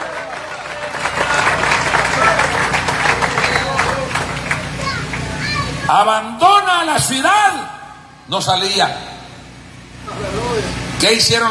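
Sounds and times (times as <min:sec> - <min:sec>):
audience applauding: 0:00.0 - 0:05.6
speech: 0:05.9 - 0:09.1, 0:10.6 - 0:11.4.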